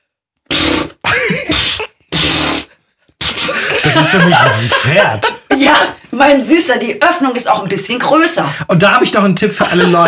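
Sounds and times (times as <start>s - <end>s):
voice imitating a vaginal fart: 0.5s - 3.6s
laughter: 3.5s - 6.0s, 9.5s - 10.0s
speech: 3.8s - 10.0s.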